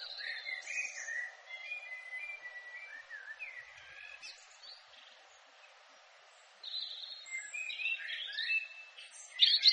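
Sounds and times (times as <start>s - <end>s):
European robin singing: 0.0s - 9.7s.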